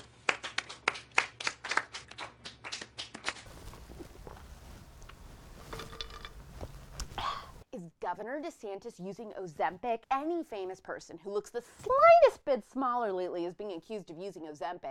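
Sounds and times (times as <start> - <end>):
clapping: 0.1 - 3.4
speech: 8.1 - 14.8.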